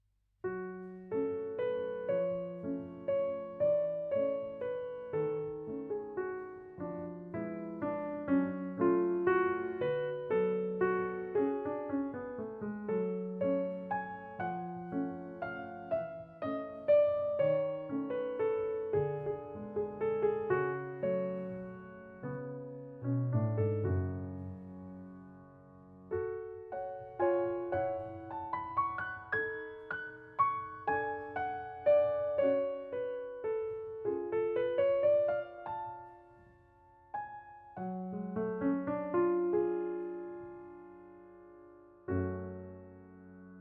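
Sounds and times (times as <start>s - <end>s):
piano: 0.0s - 43.5s.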